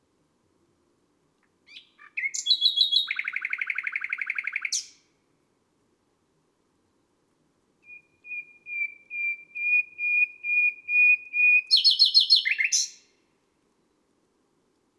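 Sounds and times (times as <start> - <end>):
nightingale singing on a May night: 1.6 - 5.1, 7.8 - 13.2.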